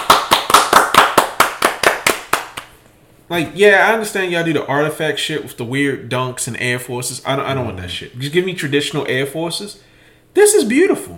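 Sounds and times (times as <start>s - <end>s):
round of applause: 0.0s - 2.7s
speech: 3.3s - 11.1s.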